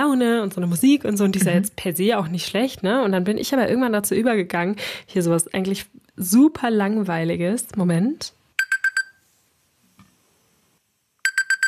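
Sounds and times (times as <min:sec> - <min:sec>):
speech: 0:00.0 - 0:08.4
smartphone alarm imitating classic alarm clock beeps: 0:08.6 - 0:09.2, 0:11.2 - 0:11.6.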